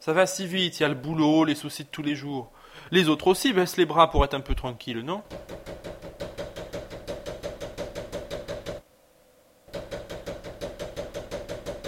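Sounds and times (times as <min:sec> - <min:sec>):
speech: 0:00.0 - 0:05.9
knocking on a door: 0:05.3 - 0:08.8, 0:09.7 - 0:11.8.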